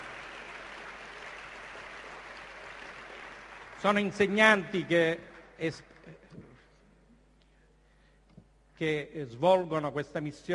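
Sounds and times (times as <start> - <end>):
audience applause: 0.0 - 4.4
speech: 3.8 - 6.5, 8.8 - 10.5.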